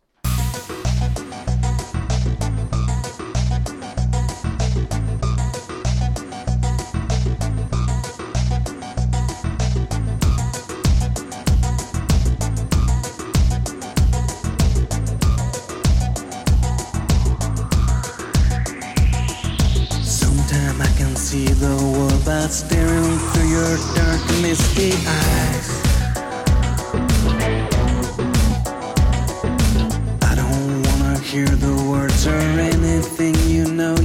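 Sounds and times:
song with driving beat and dense layered instrumentation: 0.3 - 34.0
rising synth sweep: 16.8 - 30.2
speech: 24.8 - 25.6.

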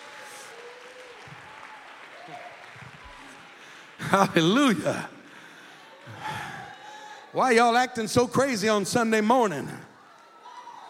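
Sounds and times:
audience clapping hands: 0.0 - 7.0
speech: 4.1 - 5.1, 7.4 - 9.9.

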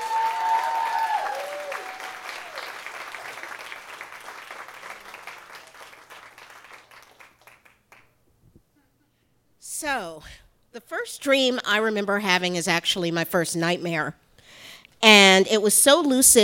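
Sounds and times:
audience applause: 0.0 - 8.1
speech: 9.8 - 14.2, 15.0 - 16.4.

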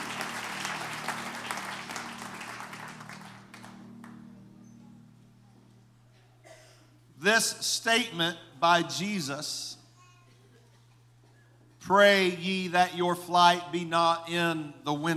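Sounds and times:
audience hand clapping: 0.0 - 4.4
speech: 7.2 - 9.8, 11.9 - 15.1.

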